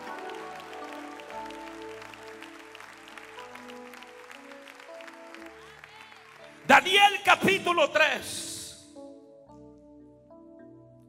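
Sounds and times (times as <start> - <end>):
audience applause: 0.0 - 7.7
sustained keyboard or organ chords: 0.0 - 11.0
speech: 6.7 - 8.4.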